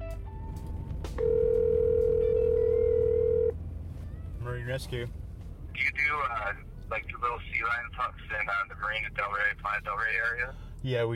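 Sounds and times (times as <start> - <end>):
low hum: 0.2 - 11.1
telephone line tone: 1.2 - 3.6
speech: 4.7 - 5.2, 5.8 - 11.1.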